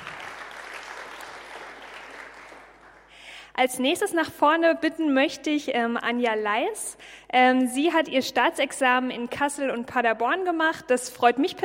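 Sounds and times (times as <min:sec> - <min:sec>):
audience applause: 0:00.0 - 0:03.2
speech: 0:03.6 - 0:11.6.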